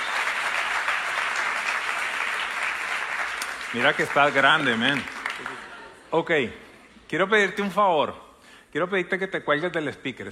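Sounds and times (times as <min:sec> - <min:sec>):
audience applause: 0:00.0 - 0:06.0
speech: 0:03.7 - 0:10.3.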